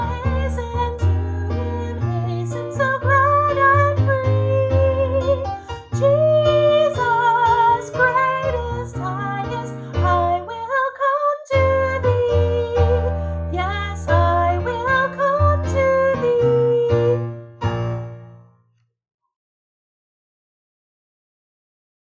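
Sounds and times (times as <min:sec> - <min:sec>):
soprano singing: 0:00.0 - 0:17.5.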